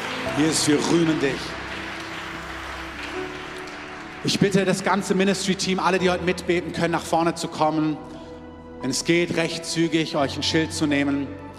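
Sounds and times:
audience applause: 0.0 - 5.7
speech: 0.3 - 1.6, 4.2 - 8.2, 8.8 - 11.5.

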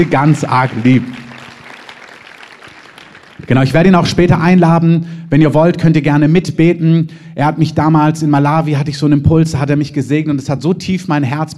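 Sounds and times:
speech: 0.0 - 1.2, 3.5 - 11.5
audience applause: 0.0 - 3.8.

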